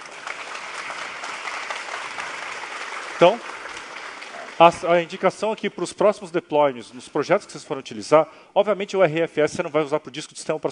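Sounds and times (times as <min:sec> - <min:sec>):
group applauding after a live technical demonstration: 0:00.0 - 0:05.6
speech: 0:03.2 - 0:03.5, 0:04.6 - 0:10.7.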